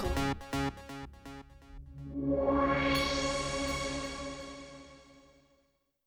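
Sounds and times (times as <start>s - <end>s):
electronic blob logo sting: 1.7s - 5.1s.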